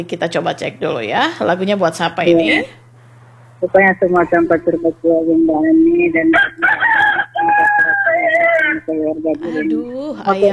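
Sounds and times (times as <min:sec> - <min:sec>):
speech: 0:00.0 - 0:02.8, 0:03.6 - 0:06.8, 0:08.9 - 0:10.5
laughter: 0:00.0 - 0:10.5
rooster crowing: 0:01.4 - 0:10.0.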